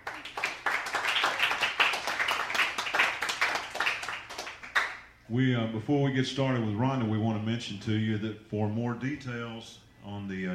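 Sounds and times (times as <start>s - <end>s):
crowd applauding: 0.0s - 5.0s
speech: 5.3s - 10.5s.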